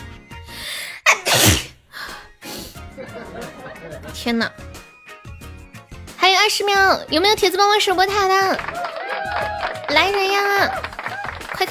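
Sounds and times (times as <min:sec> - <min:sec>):
sneeze: 0:01.0 - 0:01.8
laughter: 0:02.9 - 0:04.3
speech: 0:04.2 - 0:04.6, 0:06.6 - 0:08.9, 0:09.9 - 0:10.8.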